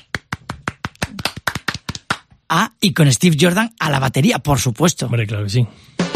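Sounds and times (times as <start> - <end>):
applause: 0.0 - 2.3
speech: 2.5 - 6.0.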